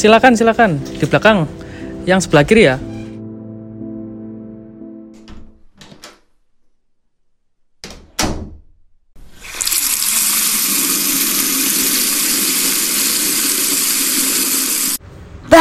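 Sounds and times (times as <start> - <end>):
speech: 0.0 - 2.9
water rushing from a tap to wash feet: 9.2 - 15.0.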